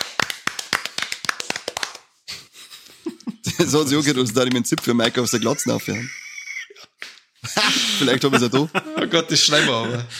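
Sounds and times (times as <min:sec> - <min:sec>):
short burst of hand clapping: 0:00.0 - 0:02.1, 0:04.0 - 0:05.5, 0:07.0 - 0:07.3
laughter: 0:02.3 - 0:10.1
speech: 0:03.6 - 0:06.2, 0:08.0 - 0:10.1.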